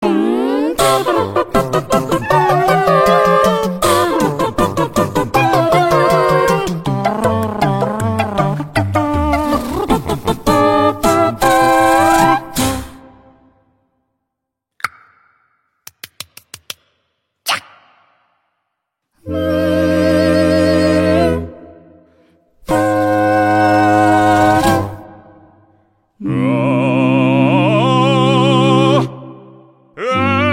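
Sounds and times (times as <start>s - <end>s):
a cappella singing: 0.0s - 13.0s, 19.2s - 25.5s, 26.2s - 30.5s.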